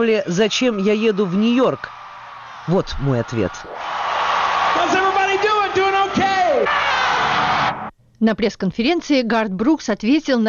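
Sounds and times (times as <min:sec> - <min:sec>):
speech: 0:00.0 - 0:02.0, 0:02.6 - 0:03.8, 0:08.2 - 0:10.4
huge concert crowd roaring with delight: 0:00.4 - 0:07.9.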